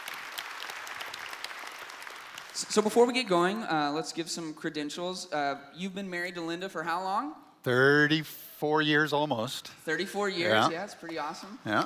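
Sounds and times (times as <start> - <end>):
audience round of applause: 0.0 - 3.2
speech: 2.6 - 11.8.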